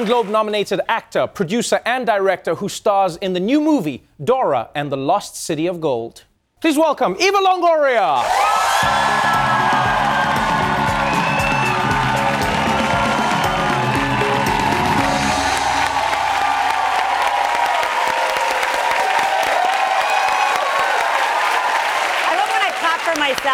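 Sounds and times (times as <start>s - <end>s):
crowd clapping with cheers and whoops: 0.0s - 0.5s, 8.2s - 23.5s
speech: 0.0s - 9.6s, 23.3s - 23.5s.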